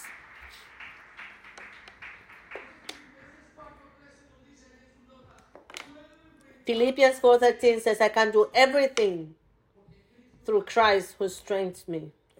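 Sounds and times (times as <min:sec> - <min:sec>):
crowd applause: 0:00.0 - 0:03.6
speech: 0:06.7 - 0:09.4, 0:10.4 - 0:12.2.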